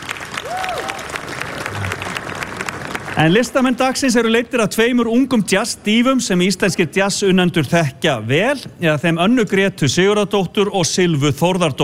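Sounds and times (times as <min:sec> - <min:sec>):
audience at a summer jazz concert in Iceland clapping: 0:00.0 - 0:04.3
speech: 0:03.2 - 0:11.8.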